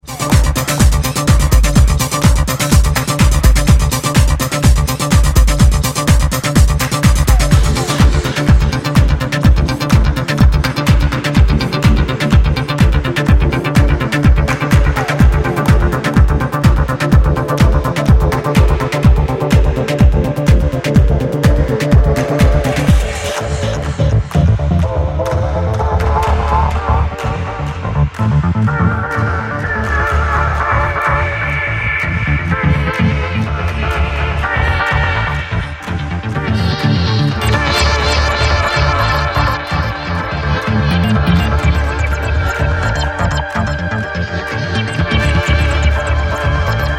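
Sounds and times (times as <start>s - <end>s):
disco music: 0.0s - 46.9s.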